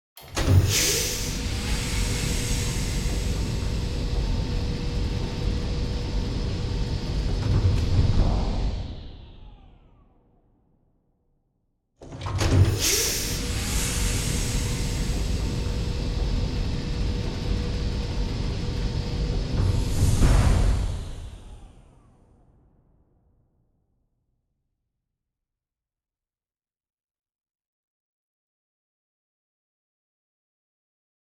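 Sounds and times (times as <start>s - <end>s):
sci-fi large gateway with lifting flap opening with pneumatics: 0.2s - 10.3s, 12.0s - 22.4s.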